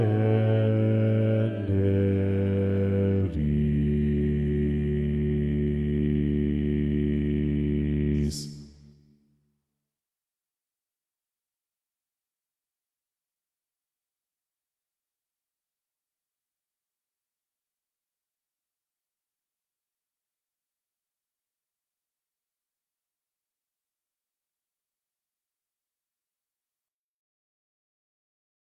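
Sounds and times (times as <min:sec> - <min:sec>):
bass: 0:00.2 - 0:08.6.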